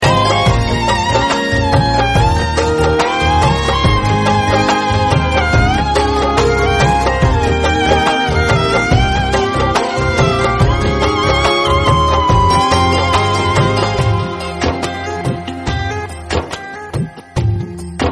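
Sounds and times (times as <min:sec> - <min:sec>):
violin ringtone: 0:00.0 - 0:18.0.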